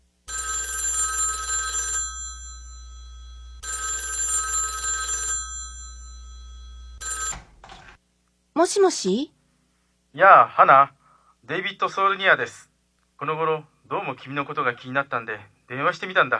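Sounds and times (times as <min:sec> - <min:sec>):
telephone ringing: 0:00.3 - 0:08.0
speech: 0:08.6 - 0:09.4, 0:10.1 - 0:16.3.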